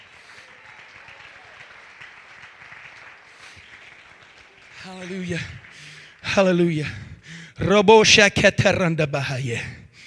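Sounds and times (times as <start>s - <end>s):
crowd clapping hands: 0.0s - 7.4s
speech: 4.8s - 5.6s, 6.3s - 7.0s, 7.6s - 9.8s.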